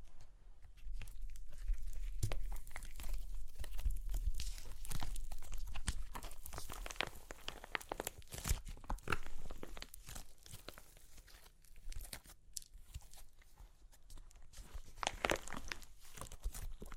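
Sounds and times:
crunchy clay cracking: 0.1s - 16.9s.

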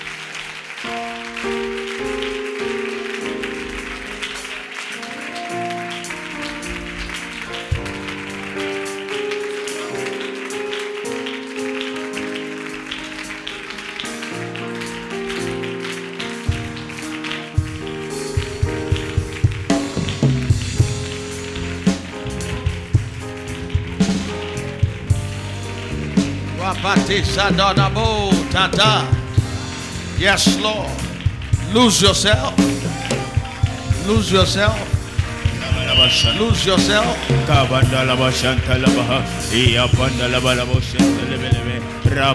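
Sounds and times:
audience clapping hands: 0.0s - 42.3s
speech: 27.1s - 29.1s, 30.2s - 31.0s, 31.7s - 32.7s, 34.1s - 34.9s, 36.1s - 42.3s.

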